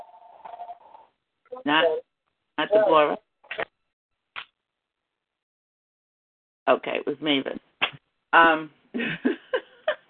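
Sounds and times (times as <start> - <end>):
phone ringing: 0.0 - 1.1
speech: 1.6 - 3.7, 6.7 - 7.7, 8.3 - 9.4.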